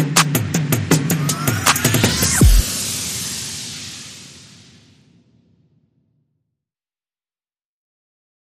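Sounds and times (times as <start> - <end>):
percussion and effects: 0.0 - 5.7.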